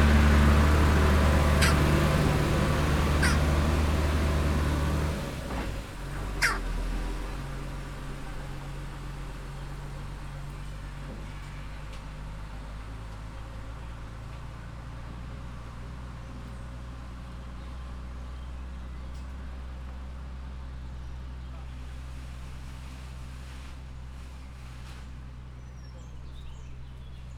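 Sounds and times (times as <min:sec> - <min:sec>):
jackdaw calling in a zoo: 0:00.0 - 0:05.3, 0:06.1 - 0:06.8.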